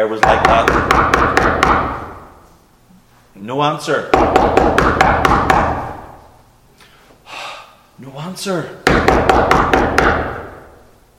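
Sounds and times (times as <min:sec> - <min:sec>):
speech: 0:00.0 - 0:01.6, 0:03.4 - 0:05.8, 0:08.3 - 0:10.3
knocking on a door: 0:00.2 - 0:02.0, 0:04.1 - 0:05.9, 0:08.8 - 0:10.4.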